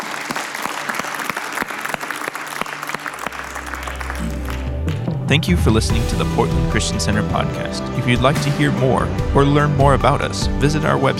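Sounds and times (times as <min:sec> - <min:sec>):
audience applauding: 0:00.0 - 0:05.5
speech: 0:05.3 - 0:11.1.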